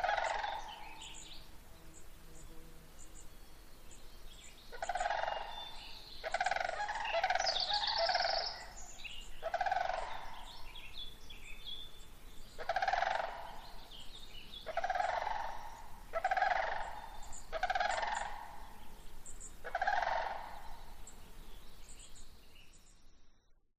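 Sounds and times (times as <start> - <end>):
sandhill cranes calling: 0.0 - 1.3, 4.7 - 10.9, 12.5 - 14.0, 14.6 - 21.1.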